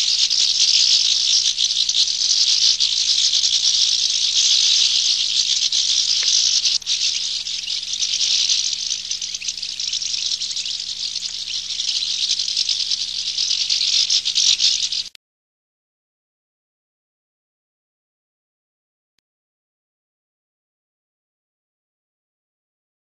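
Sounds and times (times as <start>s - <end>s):
goldfinch: 0.0s - 15.2s.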